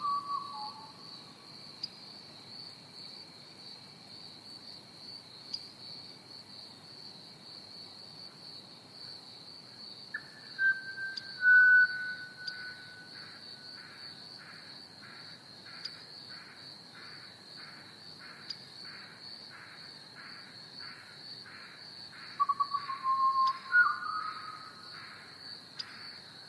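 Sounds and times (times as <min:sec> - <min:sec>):
pied butcherbird singing: 0:00.0 - 0:01.0, 0:10.2 - 0:13.1, 0:22.4 - 0:24.7
crickets chirping: 0:00.0 - 0:26.4.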